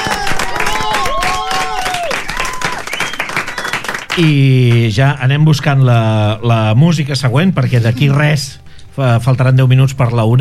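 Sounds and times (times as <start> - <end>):
voices whooping and calling out: 0.0 - 3.2
small group clapping: 0.0 - 5.0
speech: 4.2 - 10.4.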